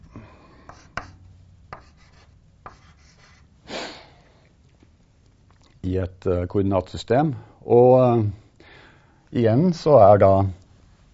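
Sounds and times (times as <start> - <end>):
pen scratching stroke drawing a graph in a coordinate system: 0.7 - 3.5
speech: 5.8 - 8.4, 9.3 - 10.6.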